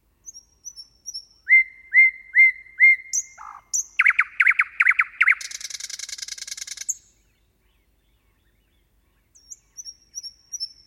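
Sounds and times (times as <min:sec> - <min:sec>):
bird singing: 0:00.1 - 0:10.8.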